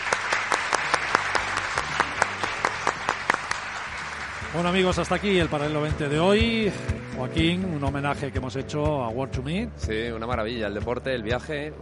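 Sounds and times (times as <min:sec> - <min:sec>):
group applause: 0:00.0 - 0:06.8
speech: 0:04.5 - 0:11.8.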